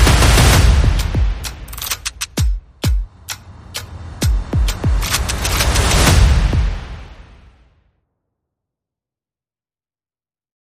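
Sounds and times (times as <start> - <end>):
percussion: 0.0 - 7.0.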